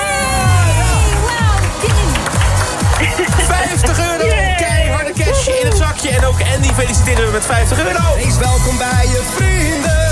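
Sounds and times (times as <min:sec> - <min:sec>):
crowd whooping and shouting in a game show cheering sound effect: 0:00.0 - 0:08.4
laughter: 0:00.6 - 0:08.8
steady low rhythmic pulse: 0:00.6 - 0:10.1
clapping: 0:01.0 - 0:04.7, 0:05.6 - 0:07.6
speech: 0:06.6 - 0:09.8.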